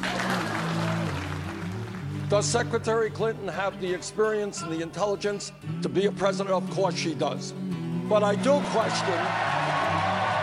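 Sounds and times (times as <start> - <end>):
audience clapping: 0.0 - 2.5, 8.9 - 10.4
speech: 2.3 - 9.6.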